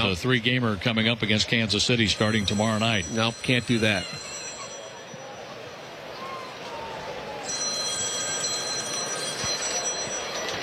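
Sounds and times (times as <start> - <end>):
speech: 0.0 - 4.4
telephone ringing in the bullpen: 2.0 - 5.7, 7.3 - 10.6.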